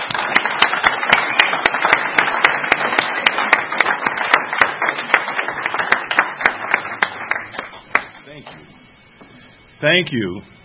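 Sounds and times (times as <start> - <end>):
meeting audience applause: 0.0 - 8.2
speech: 9.8 - 10.6.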